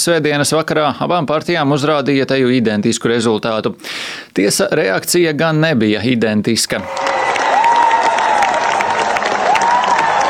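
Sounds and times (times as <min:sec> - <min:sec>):
speech: 0:00.0 - 0:07.4
crowd cheering: 0:06.8 - 0:10.2
long applause: 0:06.8 - 0:10.2.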